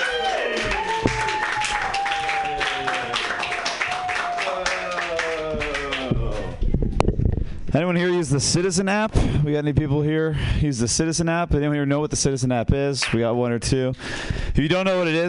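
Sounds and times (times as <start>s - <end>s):
audience applause at a comedy open mic: 0.0s - 6.7s
speech: 7.8s - 15.2s.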